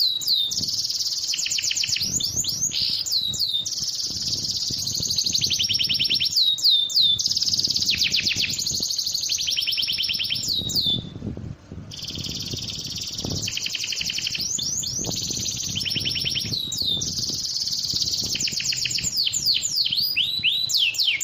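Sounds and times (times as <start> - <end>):
bird song with trills and whistles: 0.0 - 11.2, 11.9 - 21.2.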